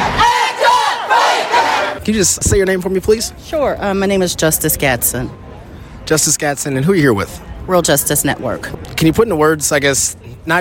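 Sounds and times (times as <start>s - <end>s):
protest crowd chanting: 0.0s - 2.0s
speech: 2.1s - 5.5s, 6.1s - 10.5s.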